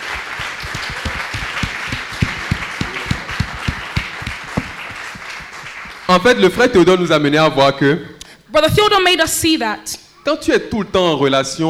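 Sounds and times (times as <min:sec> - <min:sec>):
many hands clapping at a praise gathering: 0:00.0 - 0:06.4
speech: 0:06.1 - 0:11.6.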